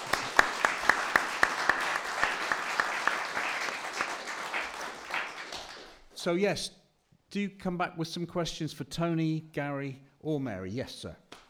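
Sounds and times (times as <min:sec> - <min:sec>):
audience applause: 0:00.0 - 0:06.1
speech: 0:06.2 - 0:11.2.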